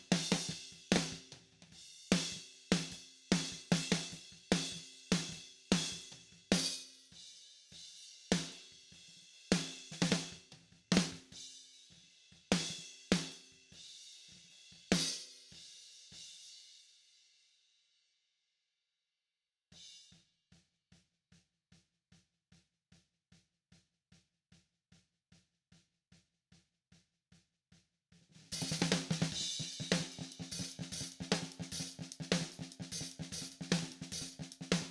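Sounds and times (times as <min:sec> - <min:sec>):
snare drum: 0:00.0 - 0:07.2, 0:09.5 - 0:11.4, 0:12.5 - 0:13.4, 0:14.8 - 0:15.6, 0:28.2 - 0:34.8.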